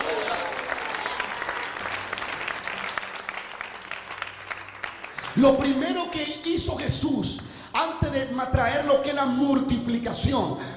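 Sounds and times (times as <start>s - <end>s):
audience clapping: 0.0s - 6.0s
speech: 5.4s - 10.7s.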